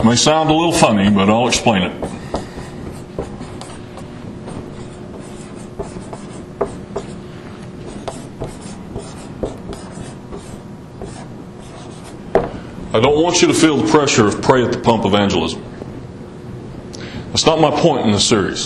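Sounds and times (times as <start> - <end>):
speech: 0.0 - 2.2, 13.0 - 15.7, 17.4 - 18.6
faint steady hum: 0.0 - 18.6
writing on a board: 1.5 - 7.2, 7.8 - 12.5.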